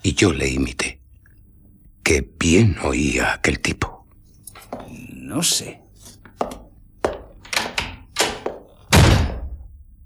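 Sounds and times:
speech: 0.1s - 1.0s, 2.1s - 3.9s, 4.8s - 5.8s, 6.4s - 6.6s
door slamming shut with a heavy booming thud: 7.6s - 9.7s.

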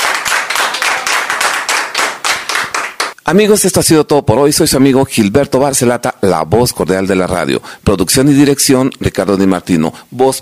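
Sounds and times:
rhythmic clapping closing a cumbia sound-system radio show: 0.0s - 3.2s
speech: 3.3s - 10.4s.

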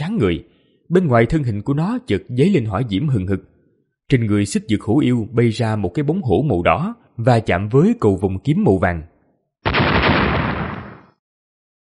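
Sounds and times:
speech: 0.2s - 3.5s, 4.1s - 9.8s
rapid successive explosions: 9.7s - 11.2s.

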